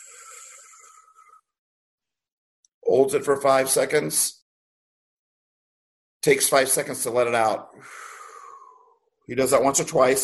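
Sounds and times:
deep inhalation in a breathing exercise: 0:00.0 - 0:01.4, 0:07.7 - 0:09.0
speech: 0:02.8 - 0:04.4, 0:06.2 - 0:08.1, 0:09.3 - 0:10.2.

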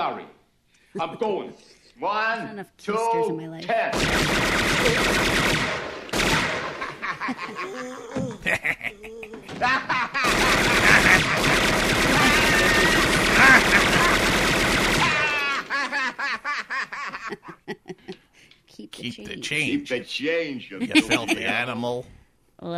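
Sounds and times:
laughter: 0:01.0 - 0:01.7, 0:06.5 - 0:18.3, 0:20.7 - 0:21.8
speech: 0:01.0 - 0:05.4, 0:07.2 - 0:10.4, 0:18.9 - 0:22.7
machine-gun fire in a Christmas movie scene: 0:03.9 - 0:07.5, 0:09.5 - 0:16.0.

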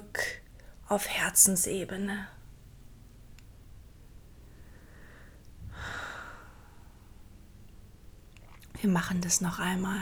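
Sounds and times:
speech: 0:00.9 - 0:02.4, 0:08.8 - 0:09.9
deep breath during a guided morning meditation: 0:04.5 - 0:07.0.

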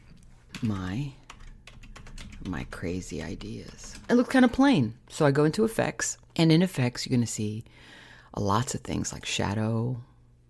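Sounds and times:
typing on a computer keyboard into a text box: 0:00.5 - 0:04.8
speech: 0:00.6 - 0:01.2, 0:02.4 - 0:10.1.

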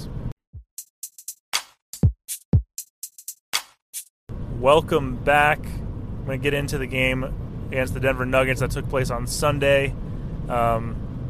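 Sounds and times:
car driving on a windy day: 0:04.3 - 0:11.2
strong wind outside a car: 0:04.3 - 0:11.2
speech: 0:04.6 - 0:05.7, 0:06.3 - 0:11.0.

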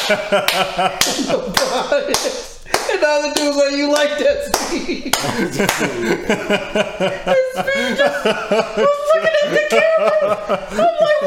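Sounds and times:
hand claps: 0:00.0 - 0:06.0
laughter: 0:00.0 - 0:11.2
speech: 0:00.1 - 0:11.2.

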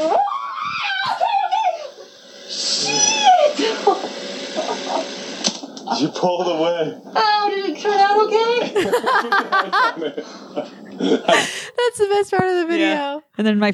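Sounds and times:
person screaming: 0:00.1 - 0:02.0, 0:02.8 - 0:03.9
laughter: 0:02.9 - 0:05.1, 0:08.4 - 0:11.8
speech: 0:06.2 - 0:13.7.

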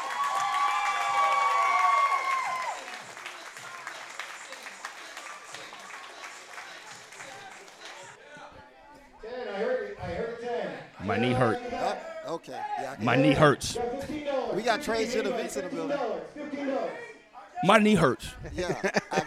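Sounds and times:
audience cheering and whooping: 0:00.0 - 0:03.0
audience applause: 0:00.0 - 0:08.2
speech: 0:11.1 - 0:19.2
laughter: 0:17.9 - 0:19.2.

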